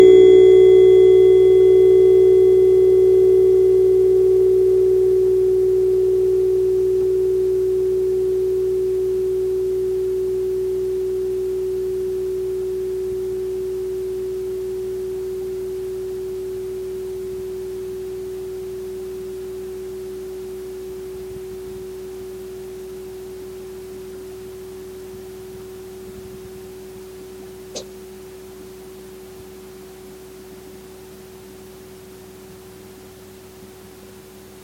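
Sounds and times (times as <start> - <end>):
tuning forks ringing: 0.0 - 17.2.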